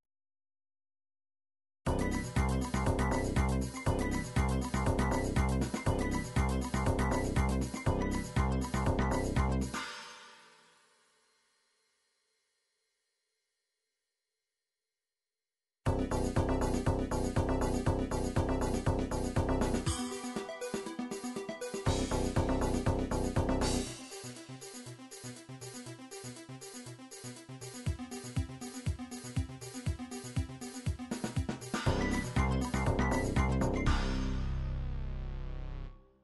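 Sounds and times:
MIDI techno music: 1.9 - 9.8, 15.9 - 35.6.

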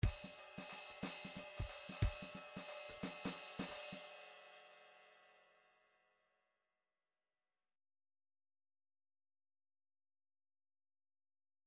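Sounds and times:
rhythmic groove in three-four time: 0.0 - 4.0.

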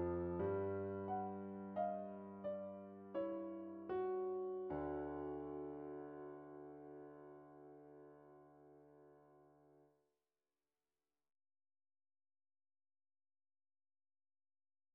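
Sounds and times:
short midi piano pieces: 0.0 - 9.8.

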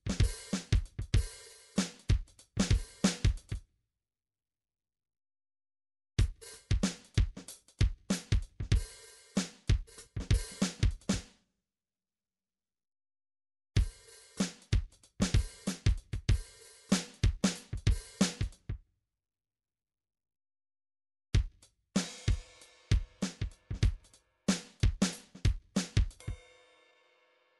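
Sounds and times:
MIDI drums: 0.0 - 3.6, 6.2 - 11.2, 13.8 - 18.7, 21.4 - 26.4.

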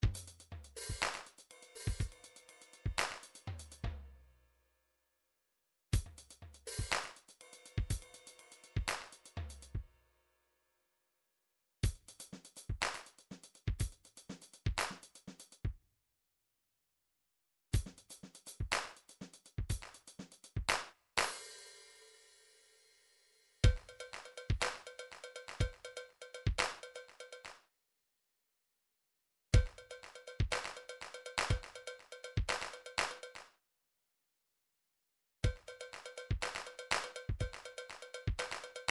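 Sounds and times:
midi drums: 0.0 - 4.0, 6.0 - 9.8, 11.8 - 15.6, 17.8 - 21.6, 23.6 - 27.4, 29.6 - 33.4, 35.4 - 38.9.

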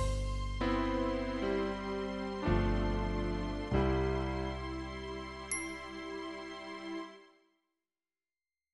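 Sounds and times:
MIDI ballad: 0.0 - 5.5.

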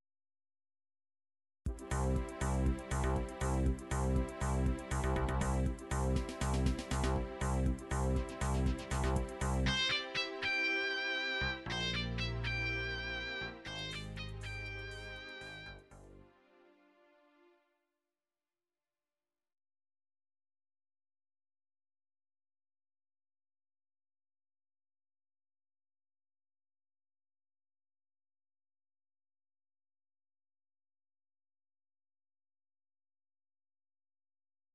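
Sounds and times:
MIDI techno music: 1.7 - 16.1.

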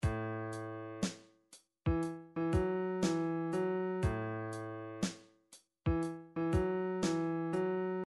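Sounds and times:
Motown drums: 0.0 - 1.2, 1.9 - 5.2, 5.9 - 7.4.

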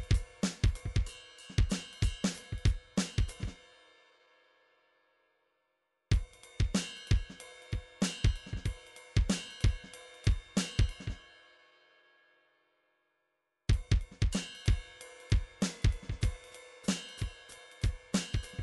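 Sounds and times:
MIDI drums: 0.0 - 3.6, 6.1 - 11.2, 13.7 - 18.6.

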